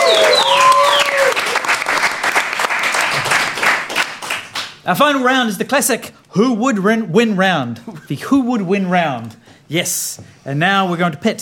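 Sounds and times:
whoops and whistles: 0.0 - 1.4
audience applause: 0.0 - 4.8
speech: 4.8 - 11.4.

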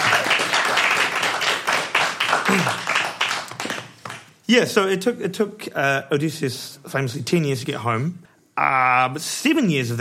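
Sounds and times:
audience applause: 0.0 - 4.3
speech: 4.5 - 9.9.

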